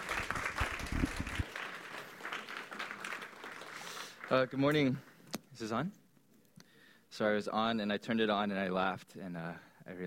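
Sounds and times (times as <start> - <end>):
audience applause: 0.0 - 5.0
speech: 4.3 - 6.0, 7.2 - 10.0.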